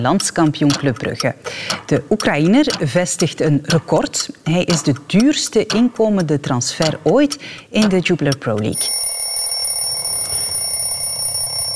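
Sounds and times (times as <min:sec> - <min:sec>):
speech: 0:00.0 - 0:09.1
bell ringing: 0:08.8 - 0:11.7.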